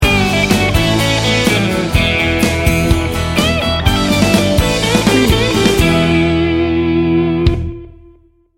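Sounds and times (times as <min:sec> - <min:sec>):
American made musical sting bumper: 0:00.0 - 0:06.9.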